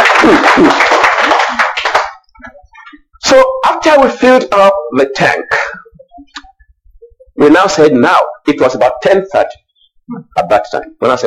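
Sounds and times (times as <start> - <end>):
church congregation clapping a clap offering: 0.0 - 2.3
speech: 0.2 - 0.9, 3.3 - 5.8, 7.4 - 11.2.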